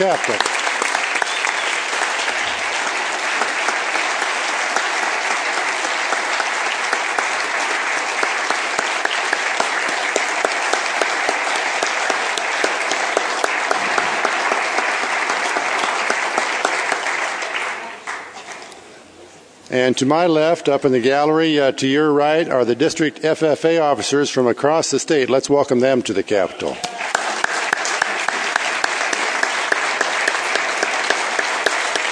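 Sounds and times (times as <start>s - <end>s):
speech: 0.0s - 0.6s, 19.8s - 26.9s
audience applause at the state Capitol: 0.0s - 18.7s, 26.7s - 32.1s.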